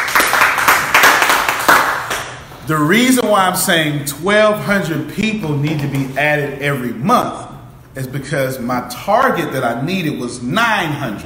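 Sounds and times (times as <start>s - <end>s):
audience clapping in a classroom: 0.0s - 2.5s
speech: 2.7s - 11.2s.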